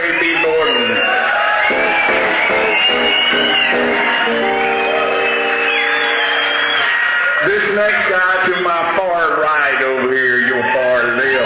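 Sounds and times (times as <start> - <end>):
audience applause: 0.0 - 8.8
audience whooping: 0.0 - 11.4
speech: 7.8 - 11.4.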